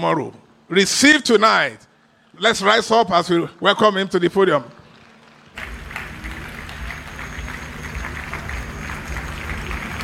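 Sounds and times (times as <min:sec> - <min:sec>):
speech: 0:00.0 - 0:04.8
audience clapping: 0:04.9 - 0:10.0.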